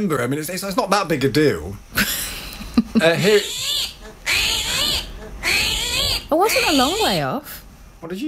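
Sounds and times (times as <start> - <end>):
speech: 0.0 - 2.3, 3.0 - 3.9, 6.4 - 8.2
armadillo squeaking: 3.0 - 7.5.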